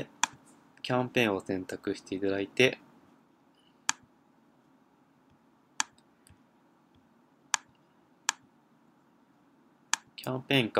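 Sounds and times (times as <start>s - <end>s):
low steady hum: 0.0s - 10.7s
computer mouse clicks: 0.2s - 0.4s, 5.8s - 6.4s, 7.5s - 8.4s
speech: 0.9s - 2.8s, 10.2s - 10.7s.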